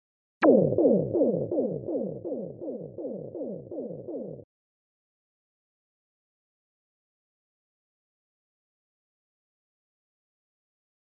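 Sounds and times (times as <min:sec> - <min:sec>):
deep space ambience: 0:00.4 - 0:04.4.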